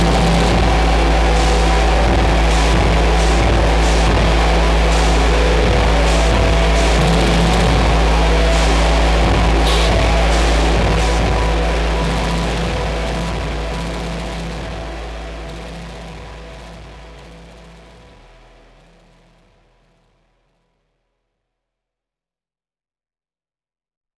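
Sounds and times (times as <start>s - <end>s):
robot chanting: 0.0s - 18.0s.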